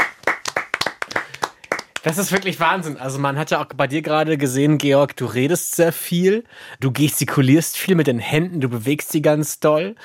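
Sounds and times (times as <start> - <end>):
sparse audience applause from a small group: 0.0 - 2.5
speech: 2.0 - 10.0.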